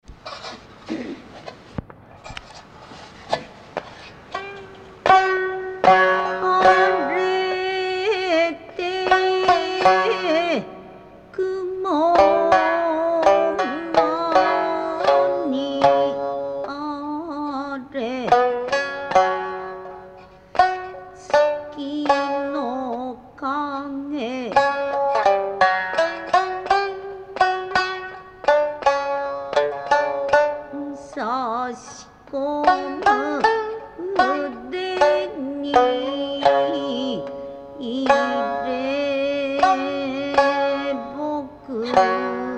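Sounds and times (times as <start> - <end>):
shamisen: 2.2 - 42.5.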